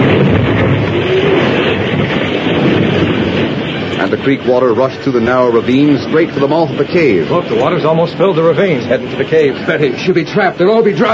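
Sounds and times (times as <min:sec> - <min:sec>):
blasting powder explosion: 0:00.0 - 0:07.7
speech: 0:04.2 - 0:11.1.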